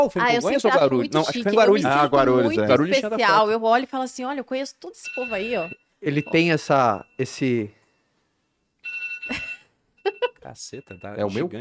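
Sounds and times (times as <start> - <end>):
speech: 0.0 - 7.8, 9.3 - 11.5
phone alarm ringing: 5.0 - 8.0, 8.8 - 11.4.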